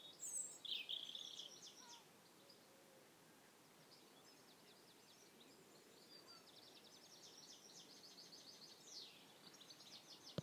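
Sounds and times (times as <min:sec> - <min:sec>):
birds singing in chorus: 0:00.0 - 0:10.4
low background hiss: 0:00.0 - 0:10.4.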